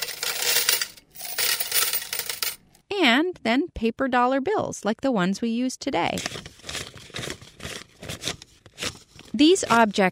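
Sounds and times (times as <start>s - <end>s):
metal coins clinking as they are poured and dropped: 0.0s - 2.6s
speech: 3.2s - 6.6s, 9.4s - 10.0s.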